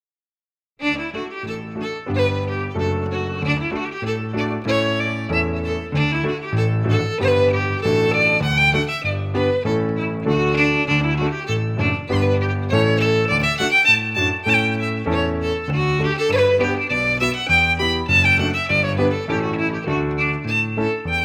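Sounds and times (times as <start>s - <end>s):
fiddle: 0.8s - 21.2s
piano: 0.8s - 21.2s.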